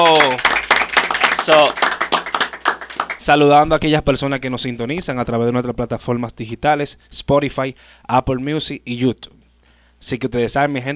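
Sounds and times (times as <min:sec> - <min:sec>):
speech: 0:00.0 - 0:00.5, 0:01.5 - 0:01.8, 0:03.2 - 0:09.4, 0:10.0 - 0:10.9
applause: 0:00.0 - 0:03.4.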